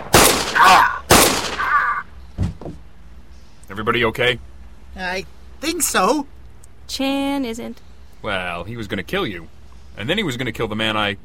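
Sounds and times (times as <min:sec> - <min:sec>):
gunshots in a crime drama scene: 0:00.0 - 0:01.9
speech: 0:03.8 - 0:11.2.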